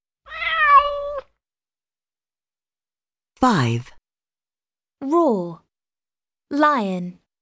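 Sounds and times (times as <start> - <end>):
cat meowing: 0.3 - 1.3
speech: 3.4 - 3.9, 5.0 - 5.6, 6.5 - 7.2.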